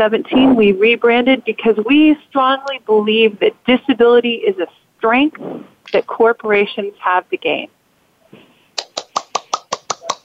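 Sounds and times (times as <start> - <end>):
speech: 0.0 - 8.4
hand clapping: 8.8 - 10.2.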